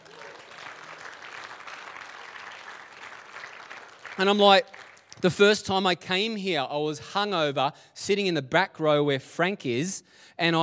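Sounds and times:
audience applause and cheering: 0:00.0 - 0:05.3
speech: 0:04.2 - 0:10.6.

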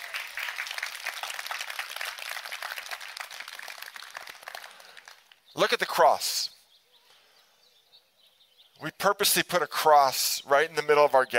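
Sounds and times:
crowd applauding: 0:00.0 - 0:05.4
speech: 0:05.6 - 0:06.6, 0:08.8 - 0:11.3.

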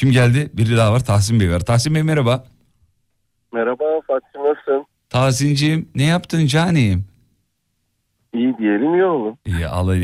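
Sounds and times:
speech: 0:00.0 - 0:02.6, 0:03.5 - 0:07.1, 0:08.4 - 0:10.0
muffled telephone caller voice: 0:03.5 - 0:04.9, 0:08.3 - 0:09.4.

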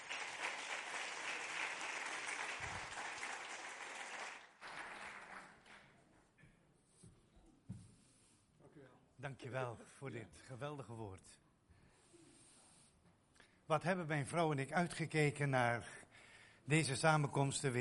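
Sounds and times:
audience applause: 0:00.0 - 0:05.9
speech: 0:09.2 - 0:11.4, 0:13.7 - 0:16.0, 0:16.7 - 0:17.7.

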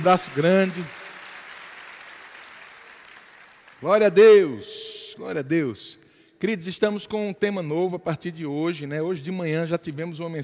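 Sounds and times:
speech: 0:00.0 - 0:01.0, 0:03.8 - 0:10.4
audience applause: 0:00.0 - 0:03.9.

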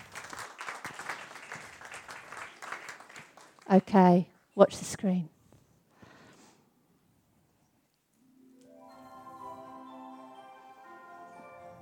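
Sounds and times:
audience applause: 0:00.0 - 0:03.7
speech: 0:03.7 - 0:05.4.

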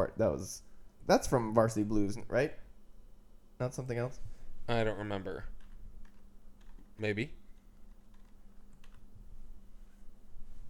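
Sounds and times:
speech: 0:00.0 - 0:02.6, 0:03.6 - 0:05.5, 0:07.0 - 0:07.4
steady low hum: 0:00.0 - 0:10.6
computer keyboard typing: 0:05.4 - 0:09.1.

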